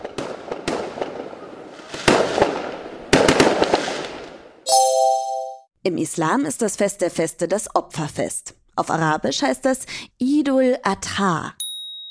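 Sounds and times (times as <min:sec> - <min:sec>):
fireworks exploding: 0:00.0 - 0:04.4
speech: 0:05.8 - 0:11.6.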